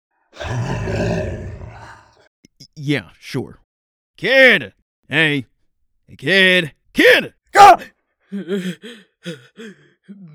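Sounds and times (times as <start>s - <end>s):
speech: 0.3s - 1.3s, 2.8s - 3.6s, 4.2s - 5.5s, 6.1s - 10.3s
sleeping person growling: 0.4s - 2.3s.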